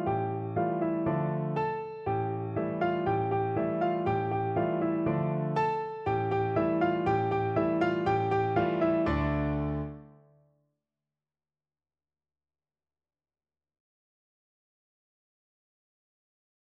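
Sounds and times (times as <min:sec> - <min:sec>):
piano duet: 0:00.0 - 0:10.3.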